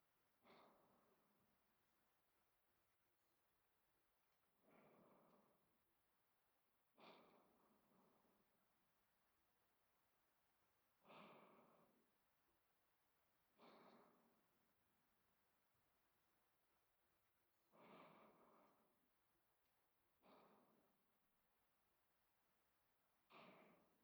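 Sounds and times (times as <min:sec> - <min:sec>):
person breathing in sleep: 0:00.4 - 0:01.3, 0:04.6 - 0:05.9, 0:07.0 - 0:08.6, 0:11.0 - 0:12.2, 0:13.5 - 0:14.6, 0:17.7 - 0:19.0, 0:20.2 - 0:21.0, 0:23.3 - 0:24.0.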